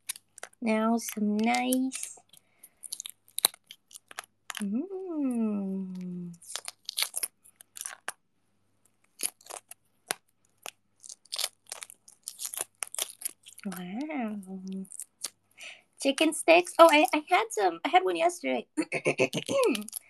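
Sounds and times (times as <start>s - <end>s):
peeling a boiled egg: 0.0s - 4.8s, 5.6s - 8.2s, 8.9s - 15.5s
speech: 0.6s - 2.2s, 4.6s - 6.6s, 13.6s - 15.0s, 16.0s - 20.0s.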